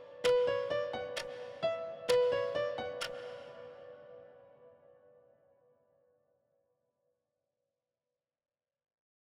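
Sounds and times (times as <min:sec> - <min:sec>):
melancholy instrumental music: 0:00.0 - 0:05.0.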